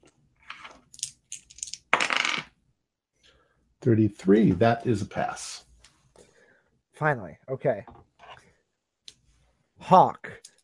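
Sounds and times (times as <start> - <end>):
dice rattling across a hard tabletop: 0.4 - 2.5
speech: 3.8 - 5.7, 7.0 - 8.0, 9.9 - 10.6.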